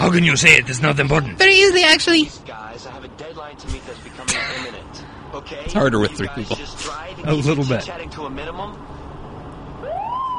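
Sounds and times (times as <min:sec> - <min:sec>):
speech: 0:00.0 - 0:09.0
dense murmuring background: 0:01.1 - 0:08.8
police car siren: 0:09.8 - 0:10.3.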